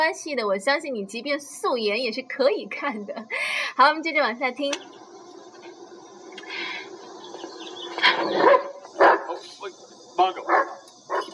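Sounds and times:
speech: 0.0s - 5.0s, 8.2s - 8.7s, 9.6s - 10.6s
dog barking: 8.3s - 9.5s, 10.4s - 11.3s.

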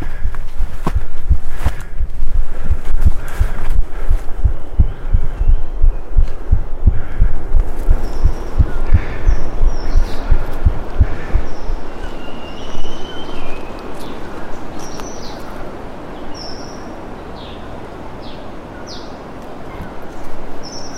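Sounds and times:
recorded human heartbeat: 0.0s - 12.0s
low rumbling background: 0.0s - 14.7s.

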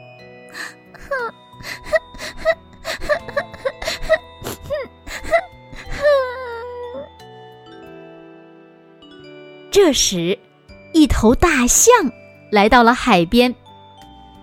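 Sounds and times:
sad crying: 0.6s - 7.2s
speech: 9.9s - 13.6s.

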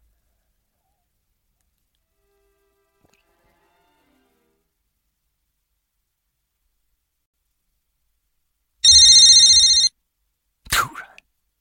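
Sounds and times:
telephone ringing: 8.8s - 9.9s.

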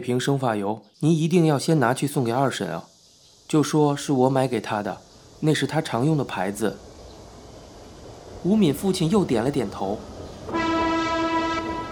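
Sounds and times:
speech: 0.0s - 2.9s, 3.5s - 6.9s, 8.4s - 10.1s
train arriving at station: 4.7s - 11.9s
train horn: 10.5s - 11.9s.

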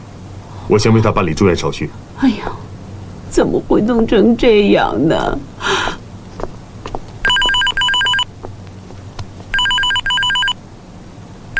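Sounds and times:
speech: 0.7s - 2.7s, 3.3s - 6.0s
mobile phone ringing: 7.2s - 8.3s, 9.5s - 10.6s.

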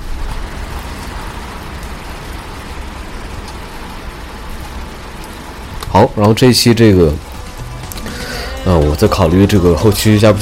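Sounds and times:
rain falling: 0.0s - 10.4s
speech: 6.0s - 7.3s, 8.7s - 10.4s.

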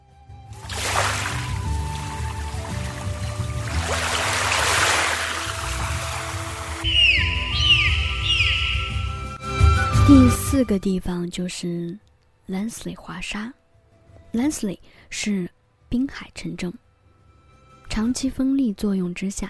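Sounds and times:
ocean waves: 0.6s - 6.8s
high rising whistles: 6.8s - 10.0s
speech: 10.6s - 13.6s, 14.3s - 16.8s, 17.9s - 19.4s.

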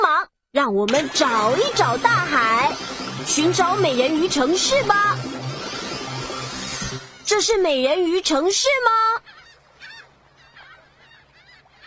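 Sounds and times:
speech: 0.5s - 5.4s, 7.3s - 9.1s
faint low hum: 0.9s - 8.6s
seagulls squawking: 9.2s - 11.8s.

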